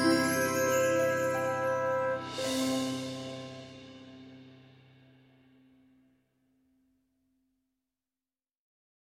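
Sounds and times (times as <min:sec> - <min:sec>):
orchestral music: 0:00.0 - 0:04.9.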